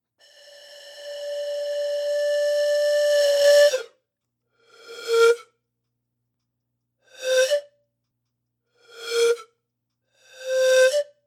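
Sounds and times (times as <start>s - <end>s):
pan flute: 0.2s - 4.0s, 7.1s - 7.7s, 10.4s - 11.2s.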